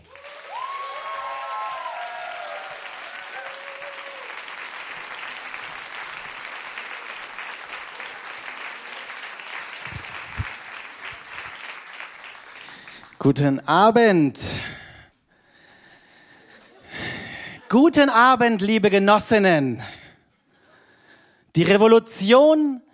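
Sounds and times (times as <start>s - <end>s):
audience applause at a stage show: 0.0s - 13.2s
speech: 13.2s - 14.7s, 17.7s - 20.0s, 21.6s - 22.8s.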